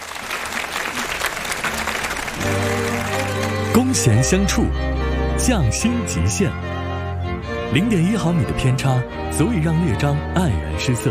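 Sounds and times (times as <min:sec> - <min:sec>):
audience applause: 0:00.0 - 0:04.2
speech: 0:03.8 - 0:06.7, 0:07.7 - 0:11.0.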